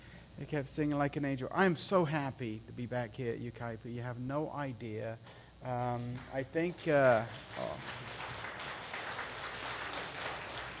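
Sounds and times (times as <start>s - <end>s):
speech: 0.4s - 8.1s
crowd clapping: 5.8s - 10.7s.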